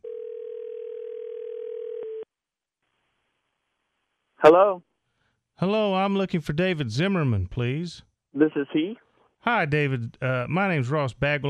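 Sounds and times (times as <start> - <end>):
telephone dial tone: 0.0 - 2.3
speech: 4.4 - 4.9, 5.6 - 11.4.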